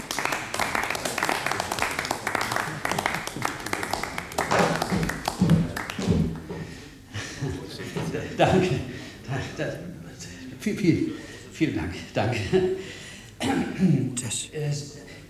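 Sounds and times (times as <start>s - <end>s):
audience applause: 0.0s - 9.6s
laughter: 0.0s - 14.2s
speech: 8.4s - 10.0s, 10.6s - 12.8s, 13.8s - 15.2s.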